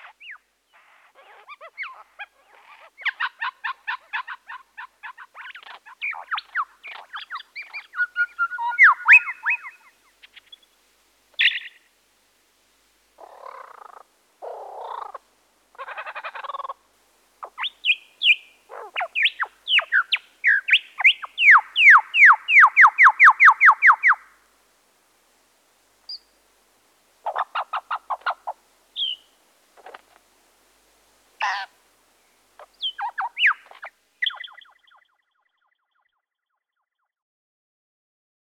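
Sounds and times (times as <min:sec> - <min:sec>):
busy birds chirping: 0:00.0 - 0:10.8, 0:11.4 - 0:11.9, 0:17.4 - 0:24.3, 0:27.2 - 0:30.0, 0:31.4 - 0:35.2.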